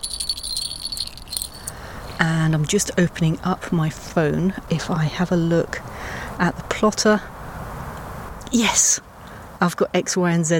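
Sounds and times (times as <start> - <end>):
small bells on a dog's collar jingling: 0.0 - 1.9
speech: 2.2 - 7.3, 8.5 - 10.5.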